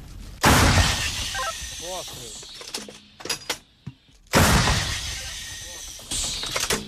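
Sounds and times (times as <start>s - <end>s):
heavy artillery cannon shots: 0.4s - 1.8s, 4.3s - 6.8s.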